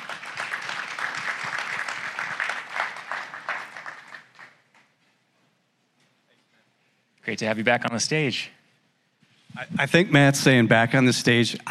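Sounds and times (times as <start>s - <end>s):
audience applause for a presenter: 0.0s - 4.8s
speech: 7.3s - 8.6s, 9.6s - 11.6s.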